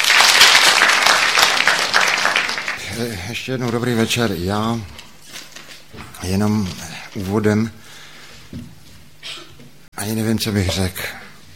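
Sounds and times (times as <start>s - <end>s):
hands clapping: 0.0s - 2.8s
speech: 3.0s - 5.0s, 6.2s - 7.8s, 8.5s - 9.4s, 10.0s - 11.2s.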